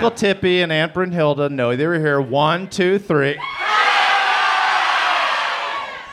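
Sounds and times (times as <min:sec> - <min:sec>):
speech: 0:00.0 - 0:03.6
large crowd shouting names: 0:03.4 - 0:06.1.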